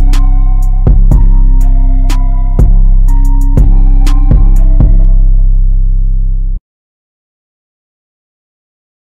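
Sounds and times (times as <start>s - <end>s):
instrumental music: 0.0s - 6.6s.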